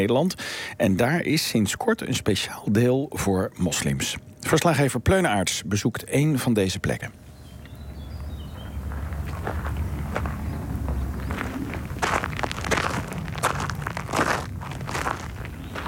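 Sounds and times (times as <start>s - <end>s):
speech: 0.0s - 7.2s
footsteps walking outdoors: 7.2s - 15.8s.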